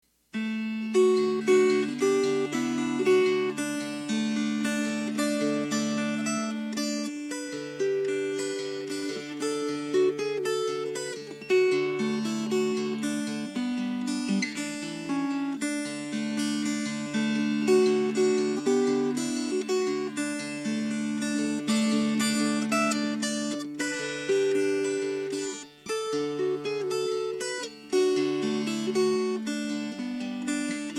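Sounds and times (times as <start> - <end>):
fingerpicked strings: 0.3 - 30.9.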